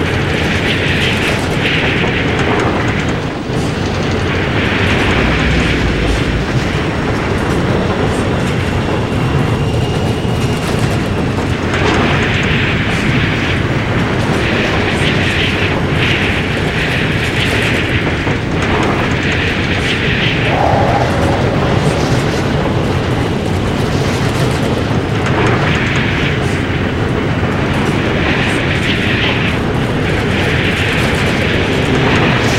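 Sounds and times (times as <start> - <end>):
airplane ambience: 0.0 - 32.5.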